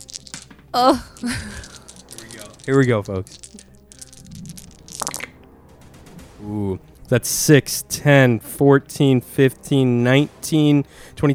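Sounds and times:
dice rolling near a microphone: 0.0 - 5.4
speech: 0.7 - 1.7, 2.6 - 3.6, 6.4 - 11.3.

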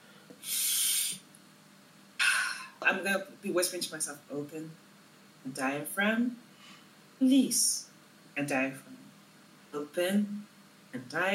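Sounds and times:
person sniffing a drink's aroma: 0.4 - 1.2
speech: 2.8 - 6.5, 7.2 - 9.0, 9.7 - 11.3.

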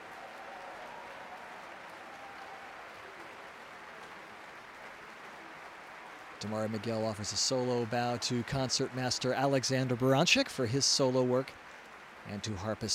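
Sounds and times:
concert hall audience applause at Davies Symphony Hall: 0.0 - 12.9
speech: 6.4 - 11.6, 12.3 - 12.9.

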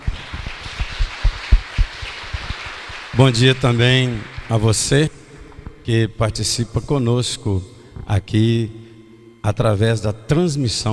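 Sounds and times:
audience applause: 0.0 - 5.0
speech: 3.2 - 5.2, 5.8 - 8.8, 9.4 - 10.9.

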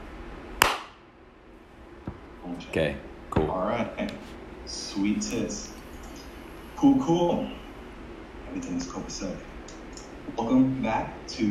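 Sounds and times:
hand clap to sync audio: 0.6 - 1.0
speech: 2.6 - 5.8, 6.8 - 7.6, 8.5 - 9.5, 10.3 - 11.4.

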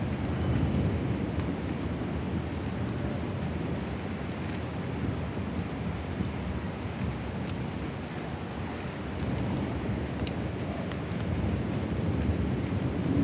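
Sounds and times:
heavy storm rain: 0.0 - 13.2.

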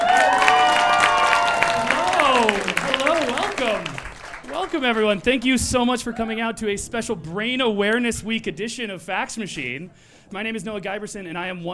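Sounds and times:
audience applause at a Brain Awareness Week comedy show: 0.0 - 5.9
crowd noise: 0.0 - 11.7
speech: 3.7 - 11.7.

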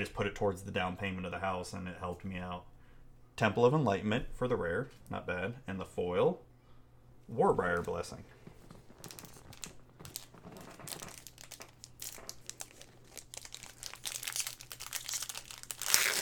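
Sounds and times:
speech: 0.0 - 2.7, 3.4 - 6.5, 7.3 - 8.4
trading card pack foil wrapper crinkling and tearing open: 8.8 - 16.2.

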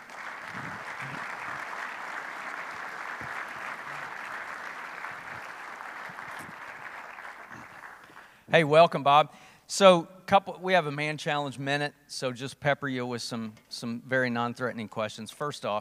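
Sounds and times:
audience applause welcoming a guest author: 0.0 - 8.4
speech: 8.5 - 15.8.

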